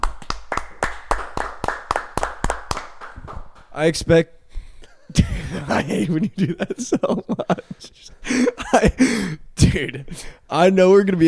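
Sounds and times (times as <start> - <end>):
hand clapping in a small room: 0.0 - 3.8
speech: 3.8 - 4.4, 5.5 - 11.2
laughter: 5.0 - 9.3.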